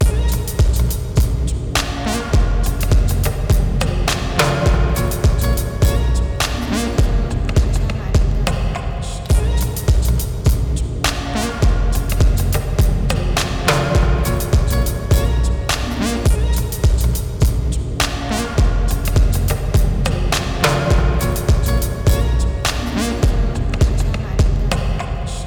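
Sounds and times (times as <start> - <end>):
music beat: 0.0 - 25.4.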